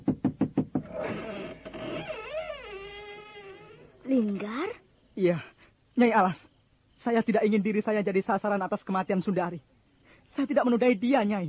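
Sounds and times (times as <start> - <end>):
firm knocking on a house door: 0.0 - 0.9
speech: 4.1 - 9.7, 10.3 - 11.4.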